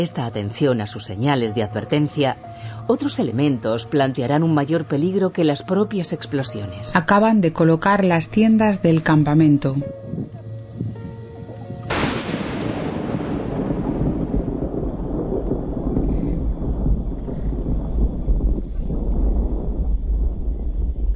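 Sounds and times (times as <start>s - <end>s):
speech: 0.0s - 10.4s
thunderclap from a nearby lightning strike: 10.8s - 21.1s.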